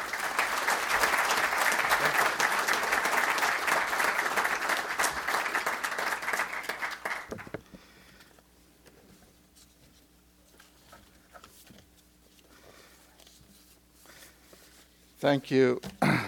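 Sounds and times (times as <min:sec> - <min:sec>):
audience applause welcoming speaker: 0:00.0 - 0:07.6
speech: 0:15.2 - 0:16.2.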